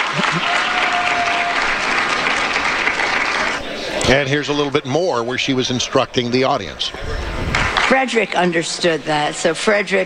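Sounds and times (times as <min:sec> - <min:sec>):
audience applause: 0:00.0 - 0:04.8, 0:07.4 - 0:08.0
laughter: 0:00.0 - 0:07.9
speech: 0:04.1 - 0:10.0.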